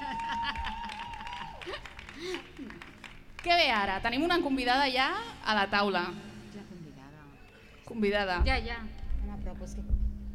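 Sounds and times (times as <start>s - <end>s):
applause: 0.0s - 4.0s
speech: 2.2s - 2.8s, 3.4s - 6.3s, 7.9s - 9.0s.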